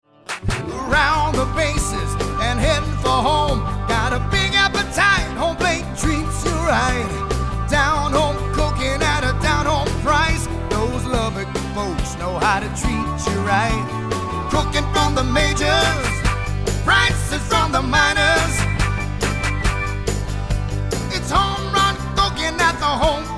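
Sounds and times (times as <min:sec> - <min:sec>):
jingle: 0:01.0 - 0:23.3.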